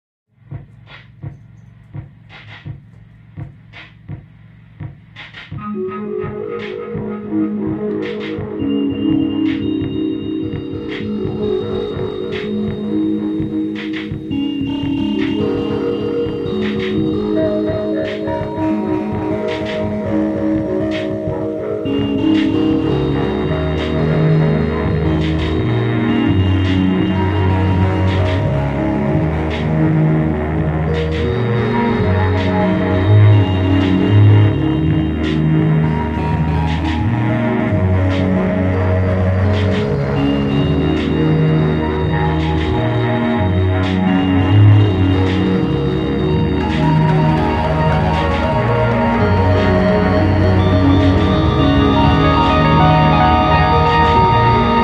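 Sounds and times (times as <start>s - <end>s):
synth music: 0.5s - 54.8s.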